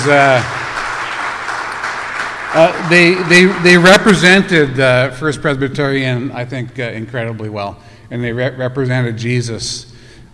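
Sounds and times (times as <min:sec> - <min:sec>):
speech: 0:00.0 - 0:00.6, 0:02.5 - 0:10.3
church congregation applauding a group from First Presbyterian: 0:00.0 - 0:05.3.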